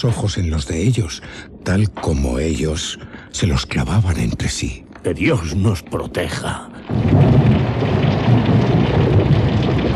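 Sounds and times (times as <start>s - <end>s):
speech: 0.0s - 7.4s
torrential downpour: 0.0s - 9.9s
thunder: 6.9s - 9.9s.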